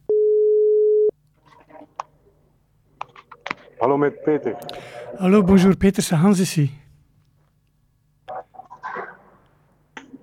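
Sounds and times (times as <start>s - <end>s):
telephone tone while calling correspondent: 0.1s - 1.1s
speech: 3.8s - 6.8s.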